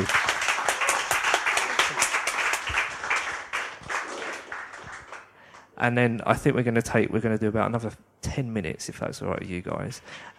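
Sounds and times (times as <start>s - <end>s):
crowd applause: 0.0s - 5.7s
speech: 5.8s - 10.3s.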